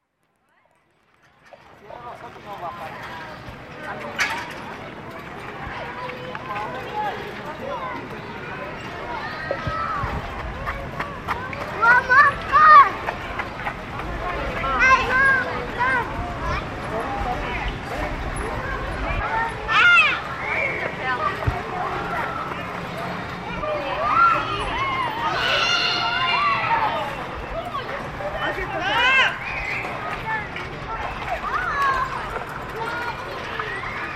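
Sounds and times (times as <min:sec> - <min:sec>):
children playing noisily: 0:01.9 - 0:34.1.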